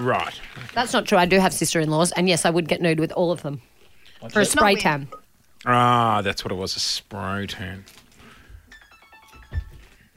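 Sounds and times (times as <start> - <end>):
speech: 0.0 - 8.0
phone alarm ringtone: 8.7 - 9.9.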